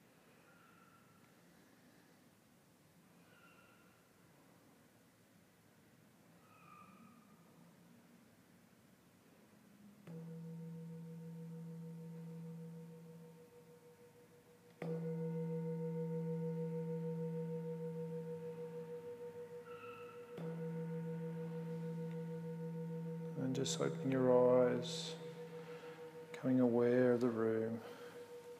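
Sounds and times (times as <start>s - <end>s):
meditation bell ringing: 10.0s - 28.5s
speech: 14.9s - 15.3s, 23.6s - 25.2s, 26.4s - 28.0s.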